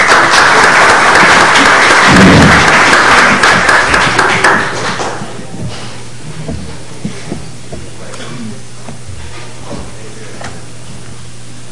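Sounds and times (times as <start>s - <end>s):
audience applause: 0.0s - 5.5s.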